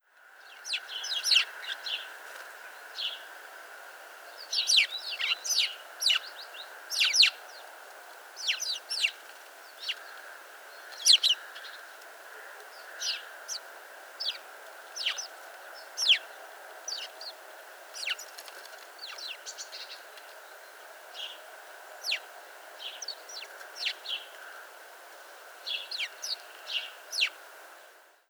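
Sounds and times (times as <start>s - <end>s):
House sparrow chirping: 0.6s - 2.2s, 4.4s - 7.7s, 8.4s - 11.9s, 12.8s - 20.1s, 22.0s - 24.3s, 25.6s - 27.4s.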